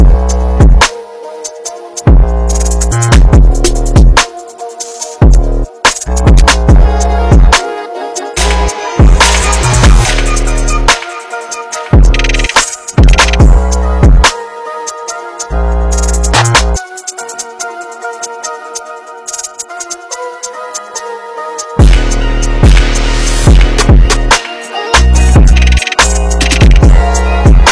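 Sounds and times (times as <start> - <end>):
drill music drum kit sounds: 0.0 - 7.6, 8.3 - 14.4, 15.9 - 17.6, 21.8 - 27.6.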